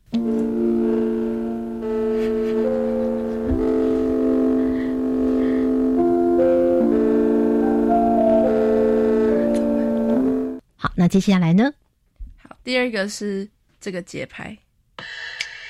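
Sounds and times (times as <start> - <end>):
soft gentle synthesized chord track: 0.1 - 10.6
speech: 11.1 - 11.8, 12.7 - 14.6.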